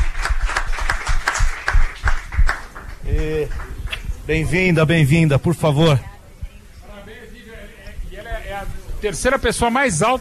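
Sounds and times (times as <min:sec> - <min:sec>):
small group clapping hands in welcome: 0:00.0 - 0:04.4
speech: 0:04.3 - 0:06.1, 0:09.0 - 0:10.2.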